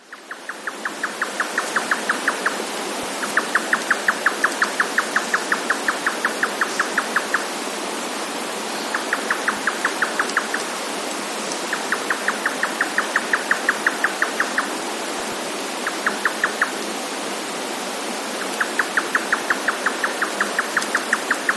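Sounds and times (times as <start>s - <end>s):
hissing background noise: 0.0s - 21.5s
grey nightjar tchuck calls: 0.1s - 2.6s, 3.2s - 7.5s, 8.8s - 10.7s, 11.7s - 14.8s, 15.8s - 16.8s, 18.4s - 21.5s.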